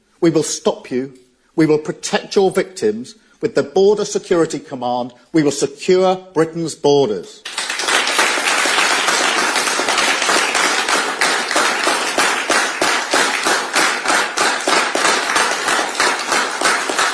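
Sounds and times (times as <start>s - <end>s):
speech: 0.2s - 7.5s
applause from a small crowd: 7.4s - 17.1s.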